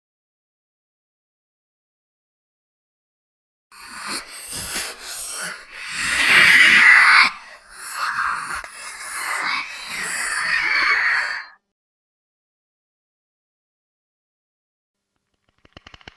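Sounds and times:
scary horror sounds: 3.8s - 11.6s.

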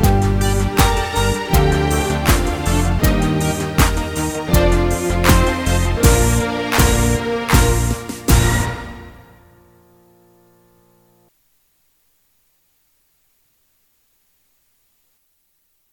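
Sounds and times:
instrumental school anthem: 0.0s - 9.9s.

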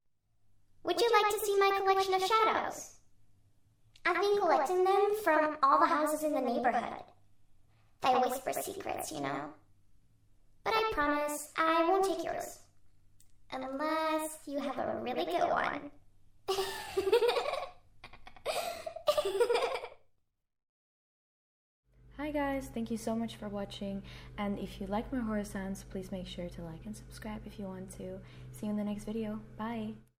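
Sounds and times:
creepy little girl talking: 0.9s - 3.0s, 4.0s - 7.2s, 8.0s - 9.6s, 10.6s - 12.7s, 13.5s - 16.0s, 22.2s - 30.1s
creepy little girl laughing: 16.5s - 20.0s.

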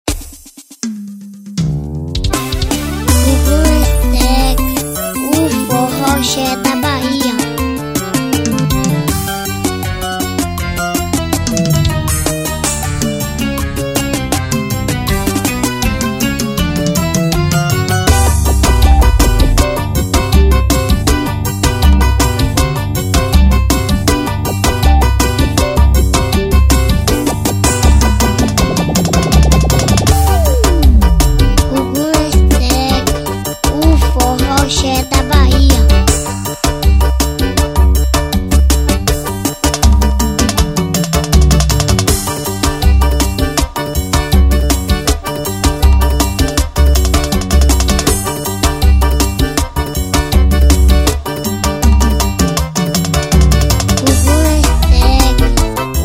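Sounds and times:
instrumental forró music: 0.1s - 56.0s.

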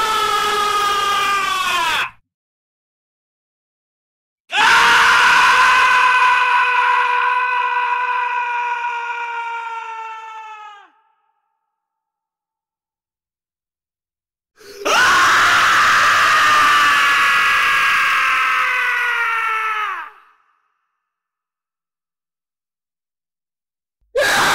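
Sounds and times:
epic scream: 0.0s - 2.2s, 4.5s - 11.0s, 14.7s - 20.4s, 24.2s - 24.5s.

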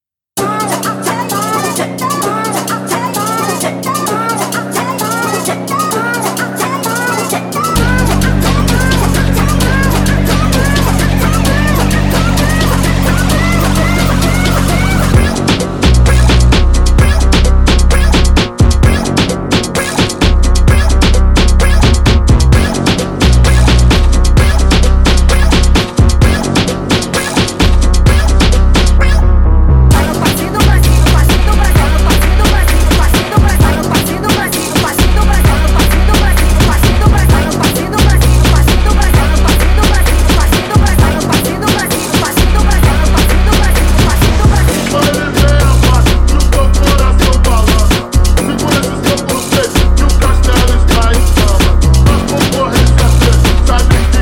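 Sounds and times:
Brazilian phonk music: 0.3s - 54.2s.

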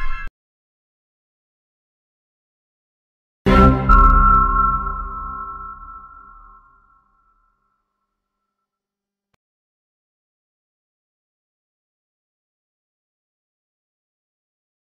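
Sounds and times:
creepy horror sounds: 3.5s - 6.8s.

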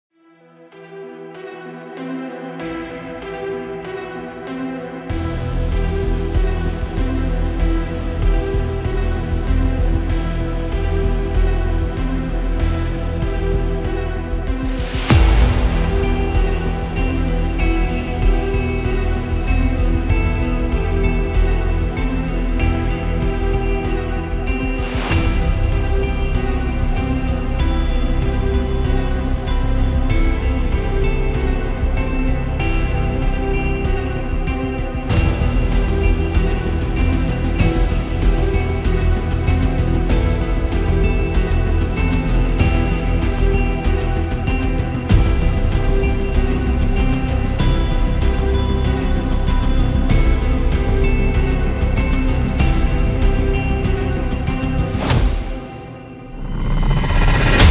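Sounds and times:
dark tension suspense music for crime mystery and thriller: 0.3s - 57.6s.

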